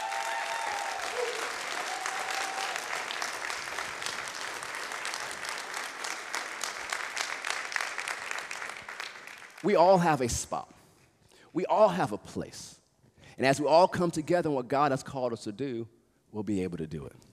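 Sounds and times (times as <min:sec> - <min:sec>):
cheers and whoops: 0:00.0 - 0:03.2
audience applause: 0:00.0 - 0:09.7
speech: 0:09.6 - 0:10.8, 0:11.6 - 0:12.8, 0:13.4 - 0:17.3.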